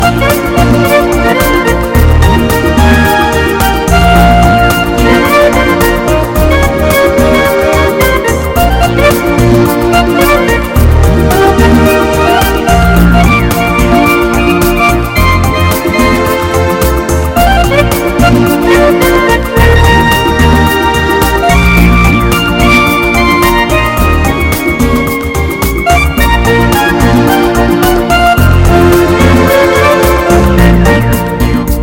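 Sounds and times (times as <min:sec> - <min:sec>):
smooth ballad: 0:00.0 - 0:31.8.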